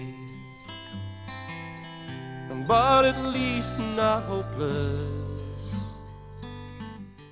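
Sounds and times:
outro music: 2.2 - 6.8.

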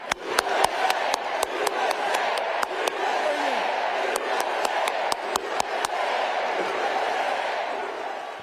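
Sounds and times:
loud sharp hand claps: 0.0 - 3.1, 4.0 - 6.0
rally crowd chanting: 0.0 - 8.4.

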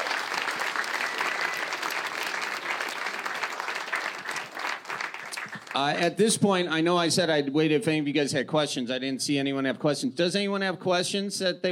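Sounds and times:
audience applause: 0.0 - 6.1
speech: 5.8 - 11.7.

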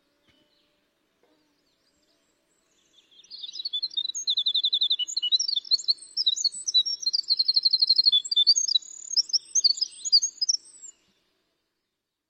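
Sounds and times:
winter wren singing flute-like song: 2.7 - 11.1.

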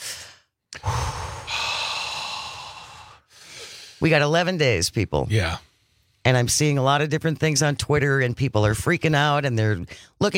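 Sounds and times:
group taking a collective deep cleansing breath inhale: 0.0 - 4.0
group's long sustained sighing exhale: 0.0 - 4.0
speech: 4.0 - 10.3.

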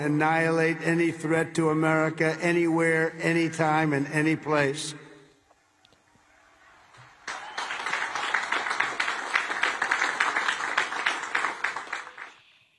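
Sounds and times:
speech: 0.0 - 5.0
very light applause from audience: 6.2 - 12.7.

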